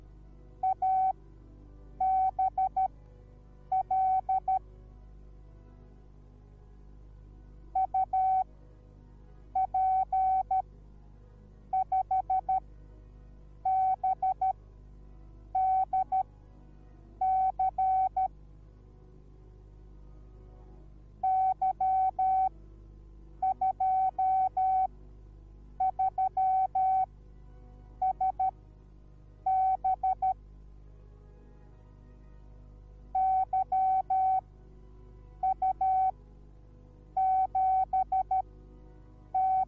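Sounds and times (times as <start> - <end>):
morse code beeps: 0.6 - 1.2, 2.0 - 2.9, 3.7 - 4.6, 7.8 - 8.5, 9.6 - 10.6, 11.7 - 12.6, 13.6 - 14.6, 15.6 - 16.2, 17.2 - 18.3, 21.2 - 22.5, 23.4 - 24.9, 25.8 - 27.1, 28.0 - 28.6, 29.5 - 30.4, 33.2 - 34.4, 35.4 - 36.1, 37.2 - 38.4, 39.3 - 39.6.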